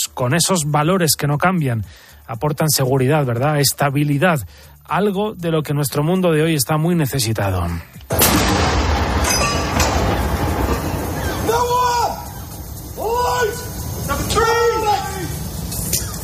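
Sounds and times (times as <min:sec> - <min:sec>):
speech: 0:00.1 - 0:08.8
cannon salute rounds booming: 0:08.1 - 0:14.0
rising and falling tonal calls: 0:09.1 - 0:16.2.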